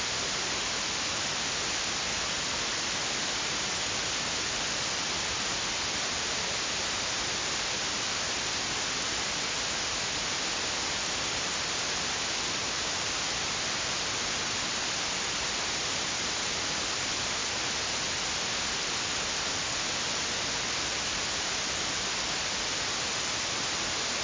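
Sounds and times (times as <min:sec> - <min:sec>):
stereo white noise: 0:00.0 - 0:24.2.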